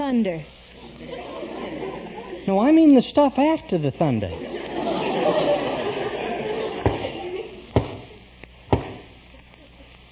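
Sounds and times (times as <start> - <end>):
speech: 0.1 - 1.3, 2.5 - 4.6
laughter: 0.8 - 2.7, 4.2 - 8.3
knock on the door: 7.8 - 8.0, 8.7 - 9.1.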